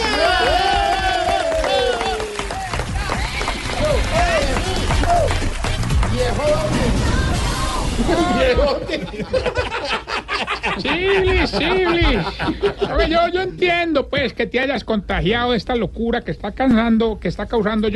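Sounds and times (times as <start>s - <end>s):
audience clapping along in rhythm: 0.0s - 7.0s
loud lively crowd voices shouting and cheering: 0.0s - 9.0s
laughter: 8.0s - 13.6s
speech: 8.5s - 9.5s, 10.8s - 17.9s.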